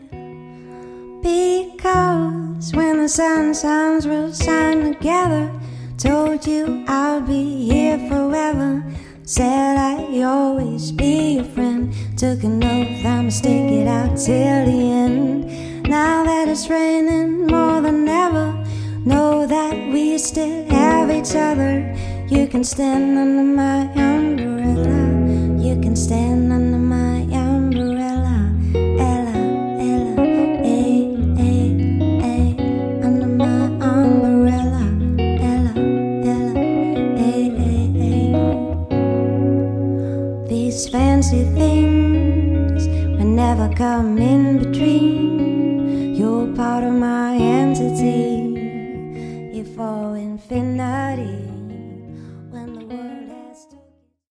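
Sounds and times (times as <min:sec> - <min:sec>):
music duo playing: 0:00.0 - 0:50.0.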